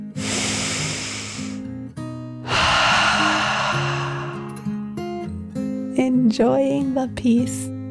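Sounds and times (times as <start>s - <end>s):
person voicing a dragon's deep breath: 0.2s - 1.6s, 2.4s - 4.8s
speech: 6.1s - 7.7s.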